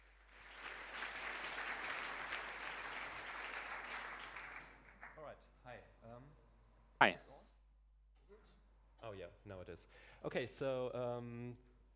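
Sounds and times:
audience applause: 0:00.0 - 0:05.1
speech: 0:07.0 - 0:07.2, 0:09.1 - 0:11.7.

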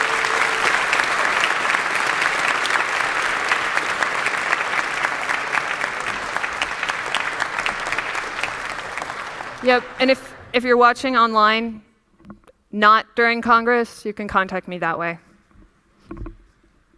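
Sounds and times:
audience applause: 0:00.0 - 0:10.5
speech: 0:09.6 - 0:11.9, 0:12.7 - 0:15.3.

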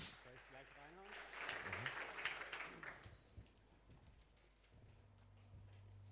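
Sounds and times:
audience applause: 0:00.0 - 0:03.4.

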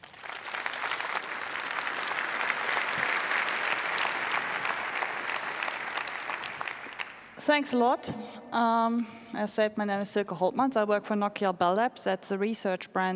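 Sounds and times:
audience applause: 0:00.0 - 0:07.4
speech: 0:07.4 - 0:13.1.

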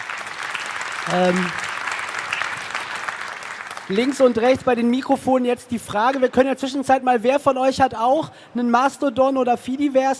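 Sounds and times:
audience applause: 0:00.0 - 0:04.7
speech: 0:01.0 - 0:01.6, 0:03.9 - 0:10.1.

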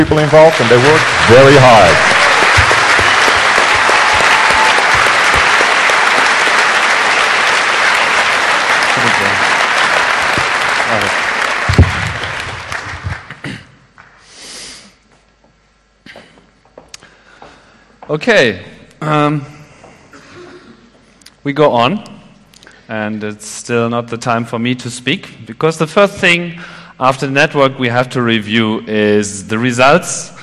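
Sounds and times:
speech: 0:00.0 - 0:02.2, 0:18.1 - 0:19.5, 0:21.4 - 0:22.2, 0:22.9 - 0:30.4
large audience applause: 0:00.0 - 0:13.6.

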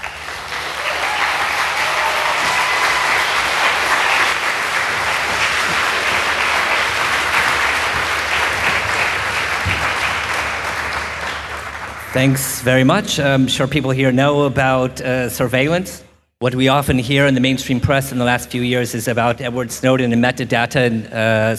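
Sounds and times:
audience applause: 0:00.0 - 0:12.4
speech: 0:12.2 - 0:21.5.

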